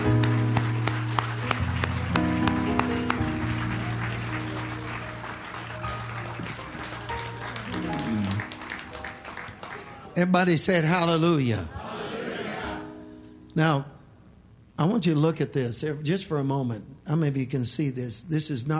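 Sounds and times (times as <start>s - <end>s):
audience clapping hands: 0.0s - 10.4s
speech: 10.2s - 11.8s, 13.6s - 13.9s, 14.8s - 18.7s.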